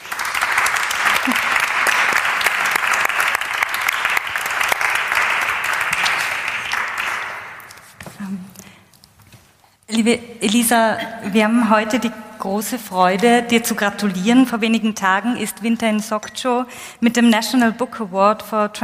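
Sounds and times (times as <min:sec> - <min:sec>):
audience applause: 0:00.0 - 0:07.7
speech: 0:10.0 - 0:18.8.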